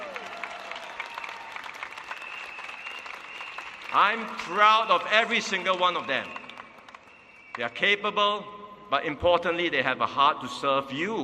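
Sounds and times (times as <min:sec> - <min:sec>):
crowd applauding: 0:00.0 - 0:07.8
speech: 0:03.9 - 0:06.4, 0:07.6 - 0:11.2.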